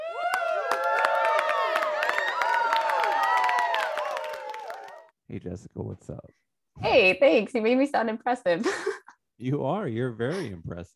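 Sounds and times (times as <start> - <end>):
audience clapping: 0.1 - 5.1
speech: 5.3 - 10.9.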